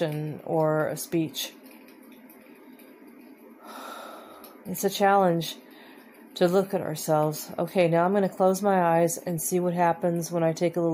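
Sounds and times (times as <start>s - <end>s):
speech: 0.0s - 1.6s, 4.6s - 5.6s, 6.4s - 10.9s
deep breathing: 3.6s - 4.6s.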